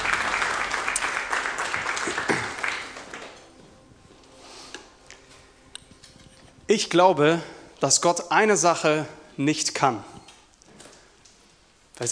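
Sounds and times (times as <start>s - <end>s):
audience applause: 0.0s - 3.4s
speech: 6.7s - 10.2s.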